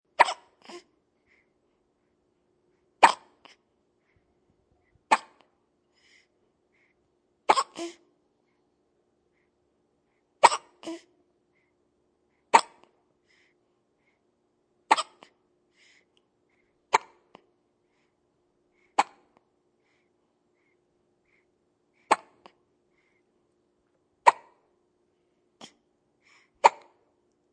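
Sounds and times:
baby hiccuping: 0:00.2 - 0:00.9, 0:03.0 - 0:03.6, 0:05.1 - 0:05.4, 0:07.5 - 0:08.0, 0:10.4 - 0:11.1, 0:12.5 - 0:12.9, 0:14.9 - 0:15.4, 0:16.9 - 0:17.3, 0:19.0 - 0:19.3, 0:22.1 - 0:22.6, 0:24.2 - 0:24.6, 0:26.6 - 0:27.0.

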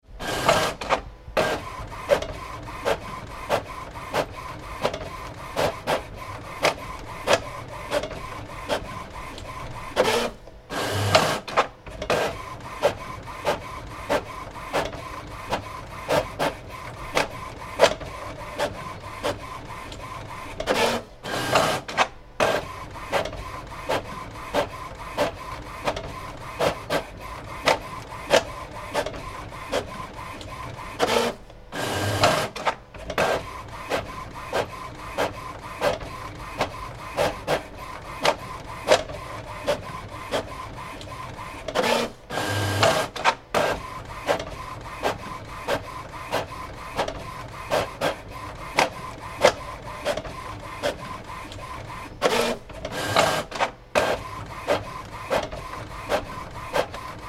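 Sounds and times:
bubble jet computer printer working: 0:00.0 - 0:57.2.

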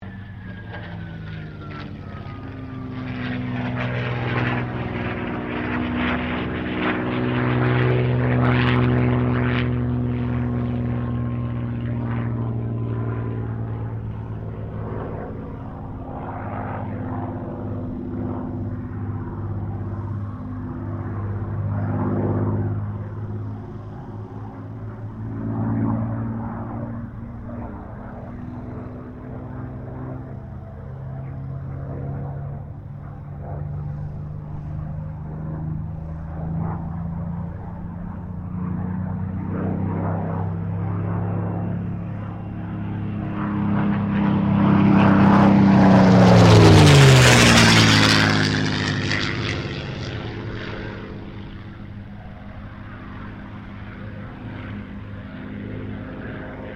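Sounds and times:
Supermarine Spitfire Mk XVI aircraft circling: 0:00.0 - 0:56.7.

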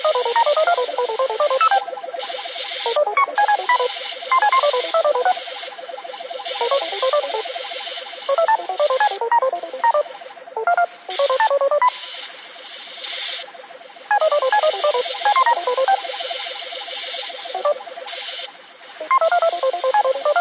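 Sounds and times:
retro computer room computer sounds: 0:00.0 - 0:12.0, 0:14.1 - 0:16.2, 0:17.5 - 0:18.0, 0:19.0 - 0:20.3.

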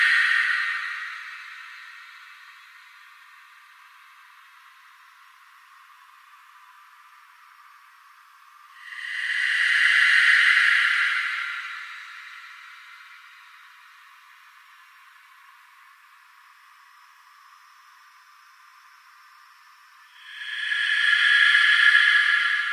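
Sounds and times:
ambient drone with slow sweep: 0:00.0 - 0:03.8, 0:08.7 - 0:15.2, 0:18.4 - 0:22.7.

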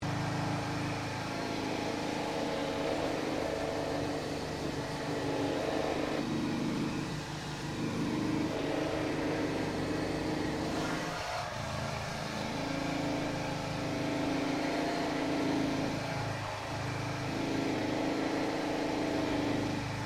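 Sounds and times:
distant small machine grinding: 0:00.0 - 0:20.0.

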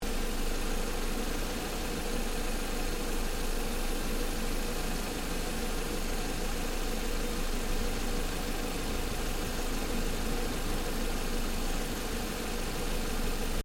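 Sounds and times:
Ford Focus engine idling in engine bay: 0:00.0 - 0:13.6.

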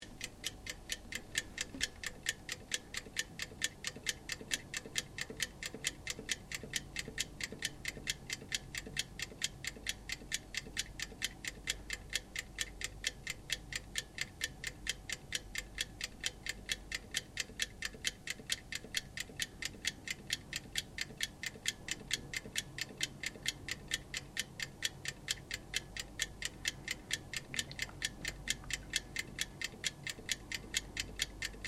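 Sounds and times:
oven timer operating: 0:00.0 - 0:31.6.

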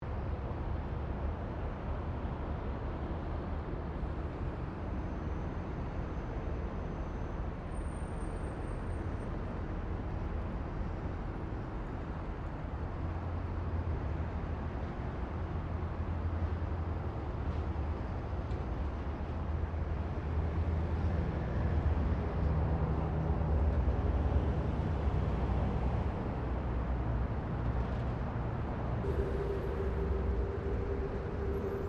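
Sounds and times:
general traffic ambience: 0:00.0 - 0:31.8.

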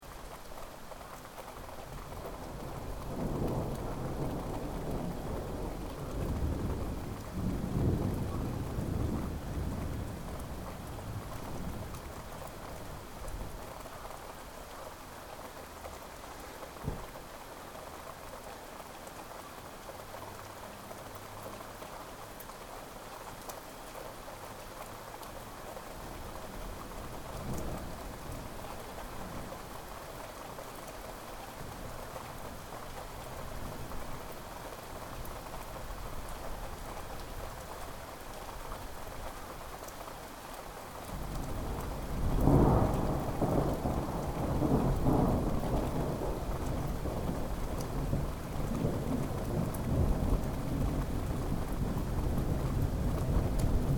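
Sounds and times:
light rain: 0:00.0 - 0:53.9
thunder: 0:02.3 - 0:12.0, 0:41.2 - 0:53.9.

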